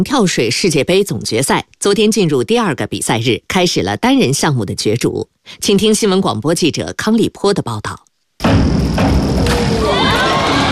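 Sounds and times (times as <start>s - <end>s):
speech: 0.0s - 9.5s
spectators cheering at the diving World Cup final: 9.4s - 10.7s.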